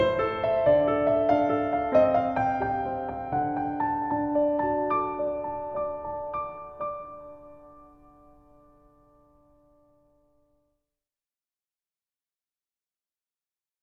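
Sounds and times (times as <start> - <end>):
solo piano: 0.0 - 10.2.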